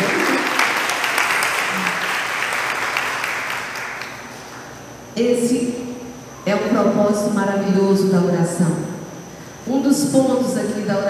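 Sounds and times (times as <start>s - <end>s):
audience applause: 0.0s - 4.2s
speech: 5.2s - 5.8s, 6.5s - 8.9s, 9.7s - 11.0s.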